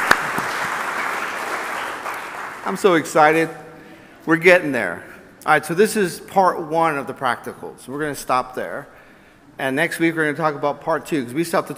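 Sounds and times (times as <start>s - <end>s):
group giving itself a round of applause after a prayer: 0.0s - 2.8s
speech: 2.6s - 3.6s, 4.2s - 9.0s, 9.6s - 11.7s.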